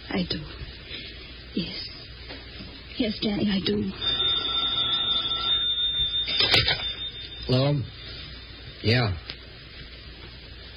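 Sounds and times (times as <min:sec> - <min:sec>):
speech: 0:00.1 - 0:00.6, 0:01.5 - 0:01.9, 0:03.0 - 0:04.2, 0:07.5 - 0:08.0, 0:08.8 - 0:09.3
telephone ringing: 0:03.9 - 0:08.8.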